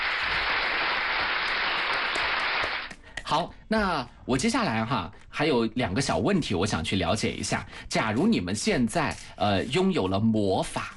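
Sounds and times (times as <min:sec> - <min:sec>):
applause: 0:00.0 - 0:03.0
speech: 0:03.3 - 0:10.9.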